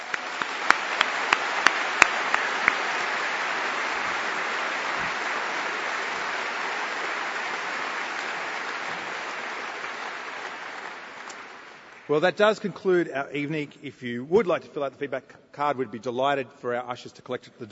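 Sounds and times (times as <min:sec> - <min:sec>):
audience applause: 0:00.0 - 0:12.4
speech: 0:12.1 - 0:17.7.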